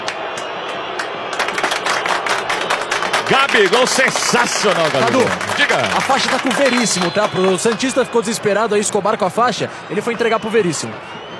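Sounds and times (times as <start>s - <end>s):
hands clapping: 0.0s - 8.1s
speech: 3.3s - 11.2s.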